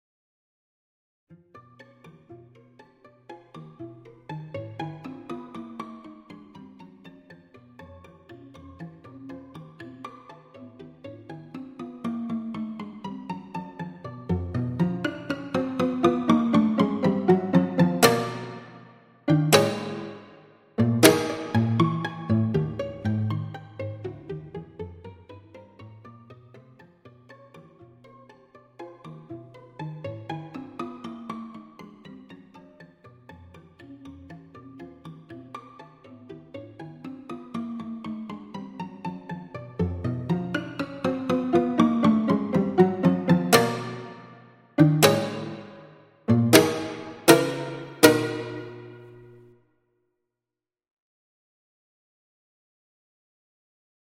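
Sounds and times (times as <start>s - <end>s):
microtonal string quartet playing a scherzo: 14.3s - 24.8s, 39.8s - 49.2s.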